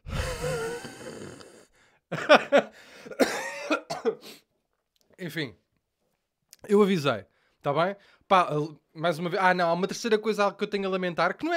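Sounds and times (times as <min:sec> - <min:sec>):
harsh loud coughs: 0:00.0 - 0:01.6, 0:02.2 - 0:04.5
drawn-out voiced throaty groan: 0:00.0 - 0:01.7
speech: 0:02.1 - 0:02.9, 0:05.2 - 0:05.6, 0:06.7 - 0:11.5.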